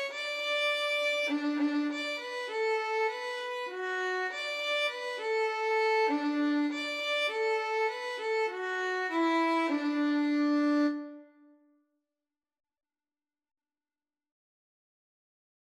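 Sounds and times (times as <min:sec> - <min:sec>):
violin: 0:00.0 - 0:11.4.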